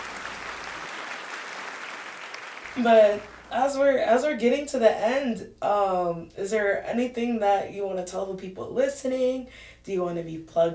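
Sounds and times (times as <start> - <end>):
round of applause: 0.0 - 3.5
speech: 2.8 - 10.7.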